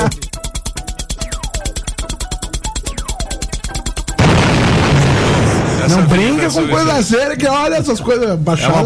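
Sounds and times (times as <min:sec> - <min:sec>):
radio jingle pounding beat for São Vicente: 0:00.0 - 0:07.4
explosion-like roar: 0:04.2 - 0:06.6
speech: 0:06.0 - 0:08.8.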